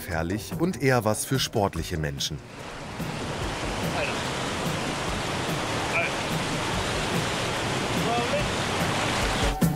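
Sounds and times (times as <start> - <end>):
speech: 0.1 - 3.3
large waterfall roaring at canyon end: 2.4 - 9.6.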